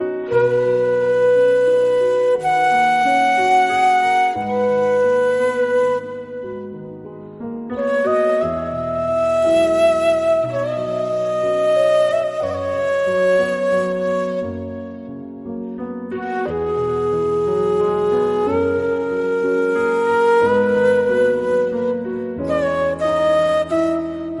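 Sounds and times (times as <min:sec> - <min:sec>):
flute cover: 0:00.0 - 0:24.3.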